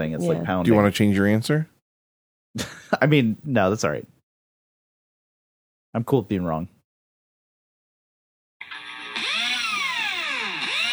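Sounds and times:
speech: 0.0 - 1.7, 2.6 - 4.1, 5.9 - 6.8
power drill running: 8.6 - 10.9.

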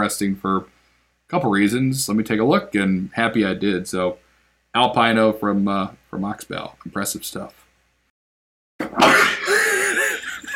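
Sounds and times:
speech: 0.0 - 7.6
sneeze: 8.8 - 9.8.

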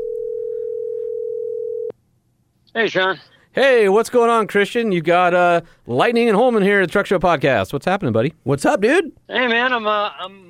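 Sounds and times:
telephone dial tone: 0.0 - 1.9
speech: 2.8 - 10.4.

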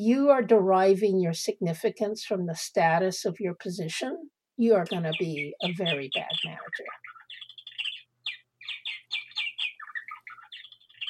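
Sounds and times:
speech: 0.0 - 7.0
small bird chirping: 4.8 - 11.0.

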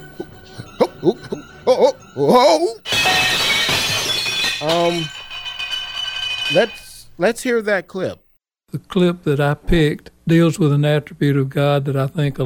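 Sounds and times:
plates crashing during a juggling attempt: 0.6 - 7.0
speech: 1.0 - 3.2, 4.6 - 5.2, 6.5 - 12.4.

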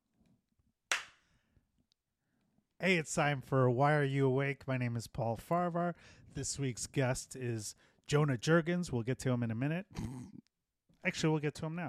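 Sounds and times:
hand clapping: 0.9 - 1.2
speech: 2.8 - 11.8.

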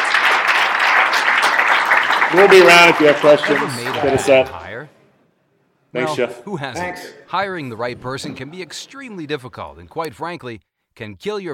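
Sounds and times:
audience applause: 0.0 - 4.7
speech: 2.3 - 5.0, 5.9 - 11.5.

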